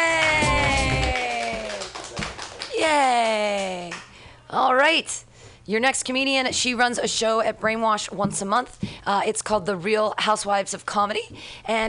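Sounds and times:
audience clapping and cheering: 0.0 - 4.1
speech: 4.5 - 11.8.

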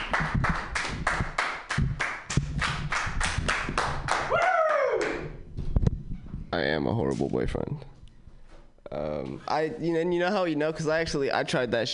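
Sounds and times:
sparse applause from a small audience: 0.0 - 5.4
speech: 6.6 - 8.0, 9.2 - 11.9.

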